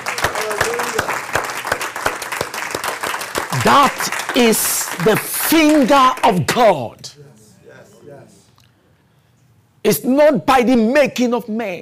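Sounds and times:
audience clapping hands: 0.0 - 6.8
speech: 3.6 - 7.2, 9.8 - 11.7.

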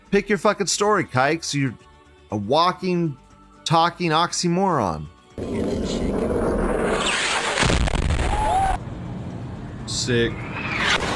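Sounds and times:
speech: 0.1 - 6.2, 9.9 - 10.7
U.S. missile exploding on impact with the ground: 5.4 - 8.8.

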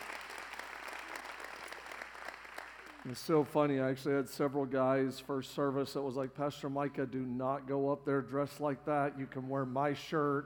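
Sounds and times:
church congregation applauding to welcome online viewers: 0.0 - 3.3
speech: 3.0 - 10.4.

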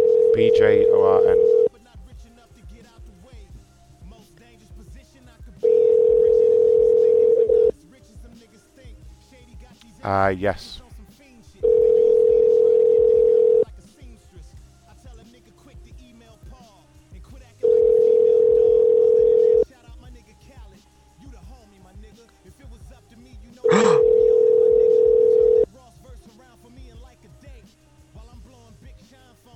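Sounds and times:
telephone tone after a call cuts off: 0.0 - 1.7, 5.6 - 7.7, 11.6 - 13.6, 17.6 - 19.6, 23.7 - 25.6
speech: 0.4 - 1.6, 10.0 - 10.8.

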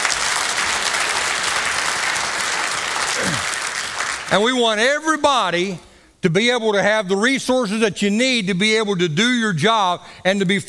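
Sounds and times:
audience round of applause: 0.0 - 4.4
speech: 4.3 - 10.6.

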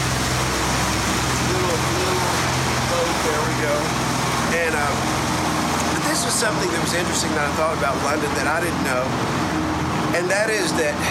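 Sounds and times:
small boat passing on a river: 0.0 - 11.0
speech: 6.4 - 9.4, 10.1 - 11.0.

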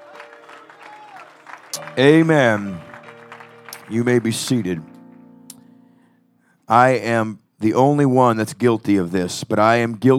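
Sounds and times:
audience clapping hands: 0.0 - 5.2
speech: 1.8 - 2.9, 3.9 - 4.9, 6.7 - 10.1.

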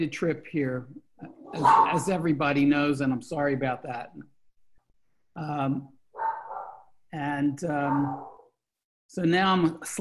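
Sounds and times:
speech: 0.0 - 4.3, 5.4 - 6.3, 7.1 - 8.3, 9.1 - 9.9
dog barking: 1.6 - 2.0, 6.2 - 6.9, 7.8 - 8.5.

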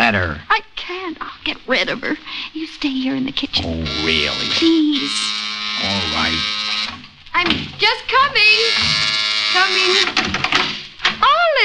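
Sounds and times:
speech: 0.1 - 11.6
apartment door buzzer ringing: 3.6 - 7.5, 8.2 - 10.7.

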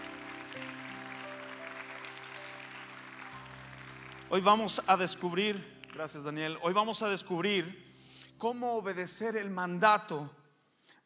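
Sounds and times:
crowd applause: 0.0 - 6.1
sustained keyboard chords: 0.0 - 7.9
speech: 4.3 - 10.4.

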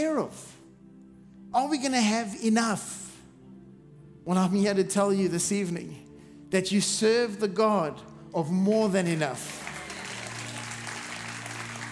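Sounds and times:
speech: 0.0 - 0.5, 1.5 - 3.0, 4.2 - 9.6
audience clapping: 8.7 - 11.9.

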